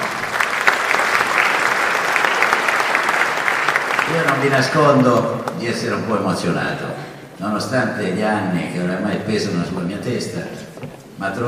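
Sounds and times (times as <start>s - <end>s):
audience applause: 0.0s - 5.6s
speech: 4.3s - 11.4s.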